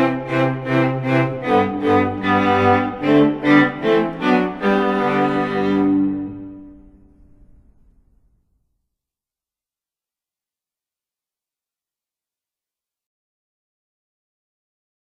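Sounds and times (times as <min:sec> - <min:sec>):
cello playing a Christmas carol: 0:00.0 - 0:07.1.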